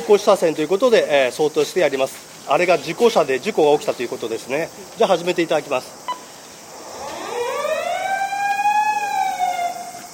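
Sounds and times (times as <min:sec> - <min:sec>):
speech: 0:00.1 - 0:06.1
emergency vehicle siren: 0:06.8 - 0:10.1.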